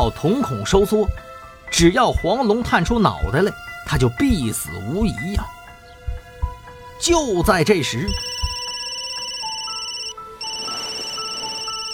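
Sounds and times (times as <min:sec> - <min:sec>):
speech: 0:00.0 - 0:05.6, 0:07.0 - 0:08.3
telephone ringing with a high electronic tone: 0:07.7 - 0:11.9.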